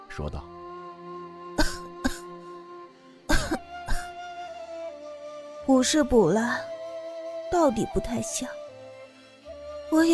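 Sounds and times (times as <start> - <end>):
speech: 0.2 - 0.6, 5.7 - 6.7, 7.5 - 8.6, 9.9 - 10.1
person coughing: 1.6 - 2.3, 3.3 - 4.1.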